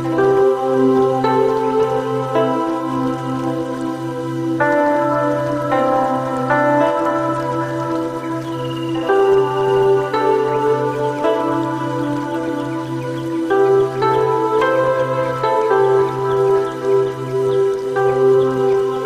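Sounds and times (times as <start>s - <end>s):
water noise in nature: 0.0s - 19.0s.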